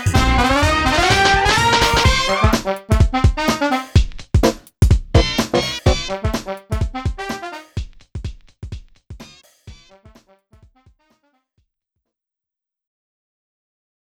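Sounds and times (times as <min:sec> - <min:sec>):
funky music: 0:00.0 - 0:08.0.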